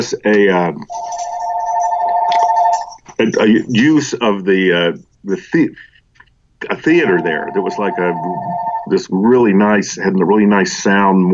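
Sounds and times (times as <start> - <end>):
speech: 0.0 - 1.0, 3.2 - 5.9, 6.6 - 11.3
telephone ringing with a high electronic tone for an incoming call: 0.9 - 3.0, 7.0 - 8.9.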